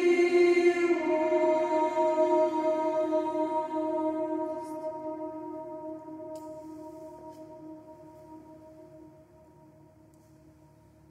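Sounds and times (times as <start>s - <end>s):
women's choir singing: 0.0s - 6.4s.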